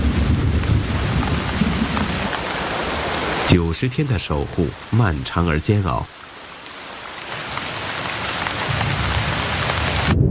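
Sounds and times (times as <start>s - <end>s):
brief rain shower: 0.0s - 10.2s
speech: 3.5s - 6.2s.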